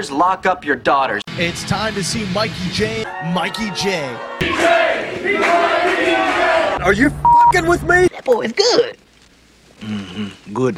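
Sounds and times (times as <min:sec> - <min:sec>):
speech: 0:00.0 - 0:09.0, 0:09.8 - 0:10.7
crowd applause and cheering: 0:03.0 - 0:08.0.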